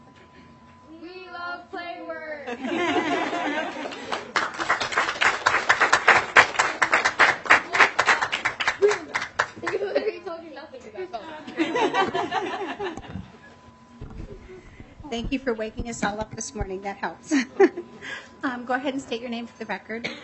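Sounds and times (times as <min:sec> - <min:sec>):
laughter: 0:02.5 - 0:04.9, 0:08.7 - 0:10.3, 0:11.2 - 0:13.4
audience clapping and cheering: 0:03.7 - 0:09.8
speech: 0:15.2 - 0:17.7, 0:18.7 - 0:20.2.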